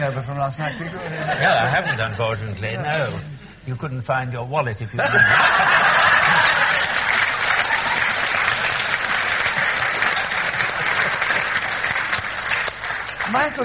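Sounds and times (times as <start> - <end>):
speech: 0.0 - 5.7, 13.3 - 13.6
laughter: 0.7 - 2.6, 5.0 - 8.7
audience applause: 5.5 - 13.6.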